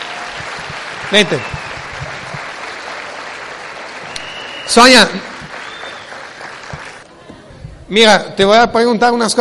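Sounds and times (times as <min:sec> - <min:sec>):
audience applause welcoming a volunteer: 0:00.0 - 0:07.1
speech: 0:01.1 - 0:01.6, 0:04.7 - 0:05.3, 0:07.9 - 0:09.3.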